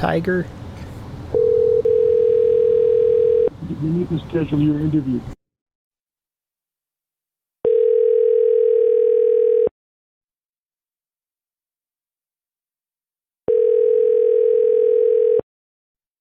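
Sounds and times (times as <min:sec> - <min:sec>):
speech: 0:00.0 - 0:00.6, 0:03.7 - 0:05.4
telephone ringback tone while redialing a number: 0:01.4 - 0:03.5, 0:07.6 - 0:09.7, 0:13.5 - 0:15.4.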